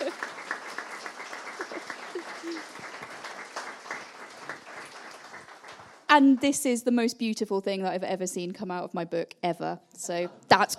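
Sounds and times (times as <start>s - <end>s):
laughter: 0.0s - 0.3s, 1.5s - 3.0s, 10.2s - 10.7s
audience applause: 0.0s - 6.6s
speech: 6.1s - 10.7s.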